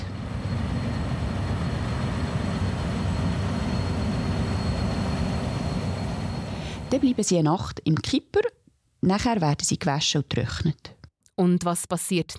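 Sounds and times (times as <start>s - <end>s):
nut harvesting machine running: 0.0s - 7.2s
speech: 6.9s - 12.3s.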